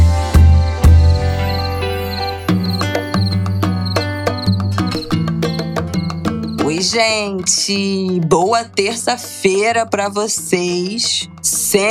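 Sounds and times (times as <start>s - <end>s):
cricket chirping: 0.2s - 6.9s
speech: 6.9s - 11.8s.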